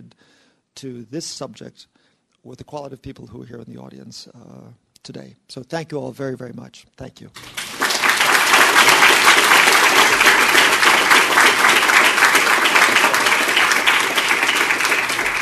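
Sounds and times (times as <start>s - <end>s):
speech: 0.8s - 7.6s
applause: 7.4s - 15.3s.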